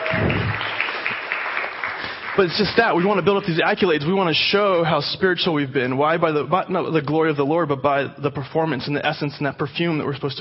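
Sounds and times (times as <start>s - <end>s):
audience clapping: 0.0s - 3.6s
speech: 2.4s - 10.3s.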